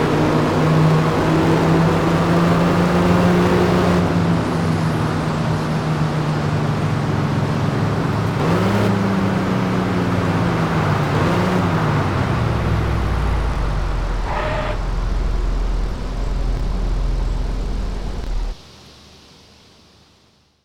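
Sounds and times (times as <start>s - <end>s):
1990 Rolls-Royce Silver Spirit engine: 0.0s - 18.6s.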